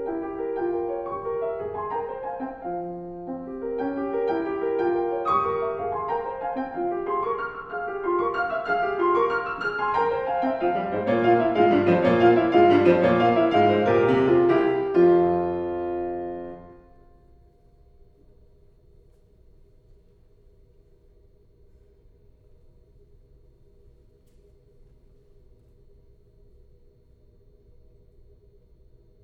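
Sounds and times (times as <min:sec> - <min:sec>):
keyboard sonata in F minor: 0:00.0 - 0:17.5.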